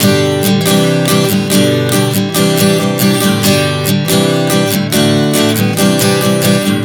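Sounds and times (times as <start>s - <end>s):
acoustic guitar chord progressions: 0.0s - 6.8s.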